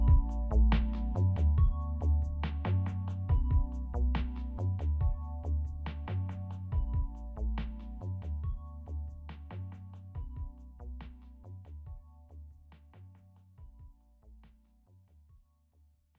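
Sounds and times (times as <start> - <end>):
happy chill lo-fi beat: 0.0 - 11.3.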